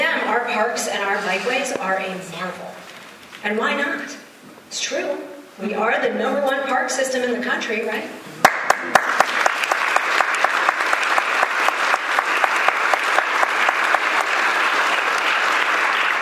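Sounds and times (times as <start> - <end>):
speech: 0.5 - 2.8, 3.4 - 9.2
audience applause: 8.4 - 16.2.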